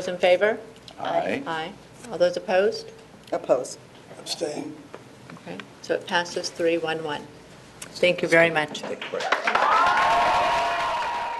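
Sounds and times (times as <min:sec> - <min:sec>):
speech: 0:00.0 - 0:04.9, 0:05.5 - 0:10.0
applause after a vote: 0:08.9 - 0:11.3.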